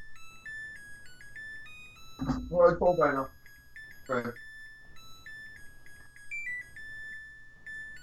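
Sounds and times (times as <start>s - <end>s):
washing machine beeping melody when finished: 0.0s - 8.0s
speech: 2.2s - 3.4s, 4.1s - 4.5s.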